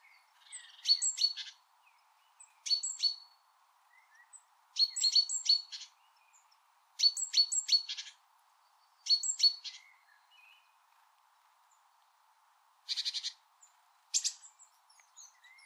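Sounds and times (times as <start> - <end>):
faint hiss: 0.0 - 15.6
great tit calls: 0.1 - 1.6, 2.4 - 3.4, 4.1 - 8.2, 8.8 - 10.0, 12.8 - 15.6.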